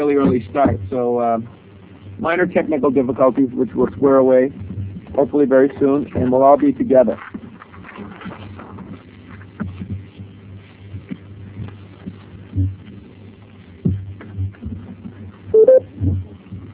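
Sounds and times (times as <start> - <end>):
speech: 0.0 - 7.4
conference call join beep: 15.6 - 15.8.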